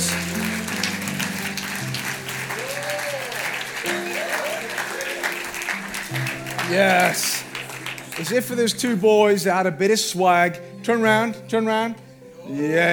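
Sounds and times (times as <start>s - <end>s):
crowd applause: 0.0s - 8.8s
whoops and cheers: 2.5s - 5.3s
speech: 6.7s - 7.3s, 8.2s - 12.9s.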